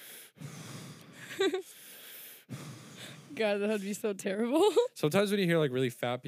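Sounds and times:
person imitating heavy wheezy breathing into a microphone: 0.0s - 3.9s
speech: 1.4s - 1.8s, 3.4s - 6.2s.

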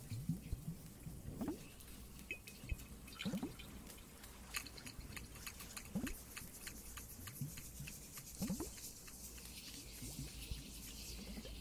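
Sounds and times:
water dripping in a cave: 0.0s - 11.5s.

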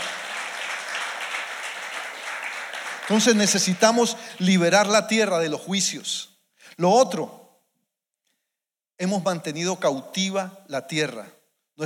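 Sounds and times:
audience applause: 0.0s - 4.2s
speech: 3.1s - 7.4s, 9.0s - 11.8s.

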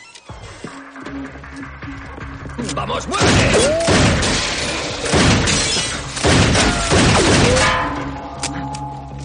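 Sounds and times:
speech: 1.1s - 4.0s
pistol gunshots: 3.2s - 7.7s.

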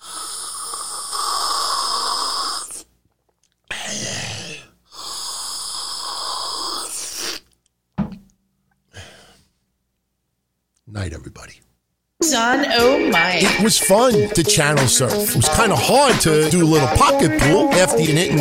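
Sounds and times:
person imitating loudly sipping espresso: 0.0s - 7.6s
speech: 11.1s - 11.7s, 12.3s - 18.3s.

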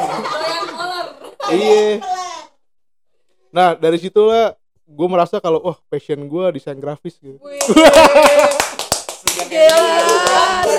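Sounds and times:
laughter: 0.0s - 2.0s, 7.5s - 8.8s, 9.7s - 10.7s
speech: 1.5s - 2.2s, 3.6s - 8.8s, 9.4s - 10.7s
hand claps: 7.6s - 10.7s.

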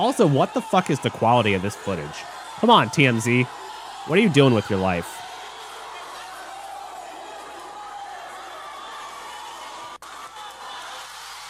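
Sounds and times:
speech: 0.0s - 5.2s
people shouting: 0.0s - 9.7s
crowd cheering at a fight: 0.0s - 11.4s.

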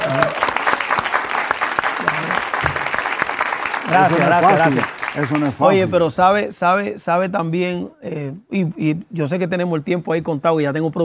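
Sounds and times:
audience applause: 0.0s - 5.9s
speech: 3.9s - 11.0s.

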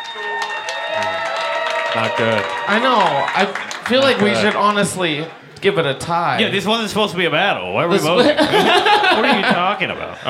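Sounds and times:
audience whooping and shouting: 0.0s - 4.5s
audience clapping: 0.0s - 5.3s
speech: 2.0s - 10.2s
laughter: 8.0s - 10.2s.

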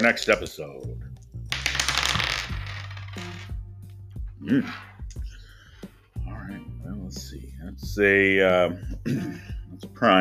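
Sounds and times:
speech: 0.0s - 0.9s, 4.4s - 4.9s, 7.7s - 10.1s
dice being cast: 1.5s - 3.6s.

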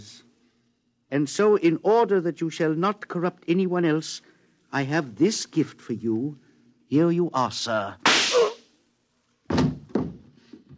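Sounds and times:
speech: 1.1s - 8.1s
heavy gunshots: 8.0s - 8.6s.

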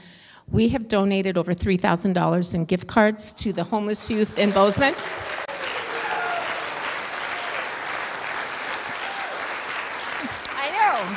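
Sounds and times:
speech: 0.5s - 5.4s
audience applause: 3.9s - 11.1s.

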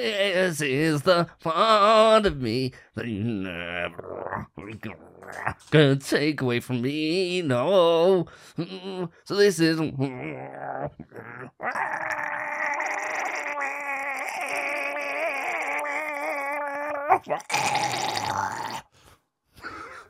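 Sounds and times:
speech: 0.0s - 12.6s, 17.1s - 18.6s
voice imitating a goat bleating a song: 3.3s - 5.7s, 9.8s - 18.9s.

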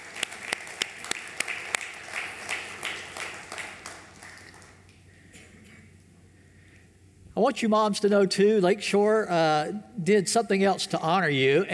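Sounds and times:
audience applause: 0.0s - 4.9s
speech: 7.4s - 11.7s.

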